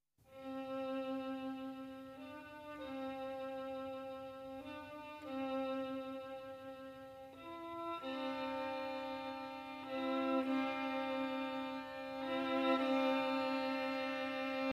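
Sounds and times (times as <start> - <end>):
violin: 0.2 - 14.7.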